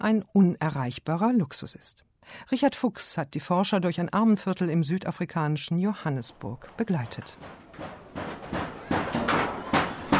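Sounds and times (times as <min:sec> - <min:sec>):
speech: 0:00.0 - 0:08.0
hammering: 0:06.3 - 0:10.1.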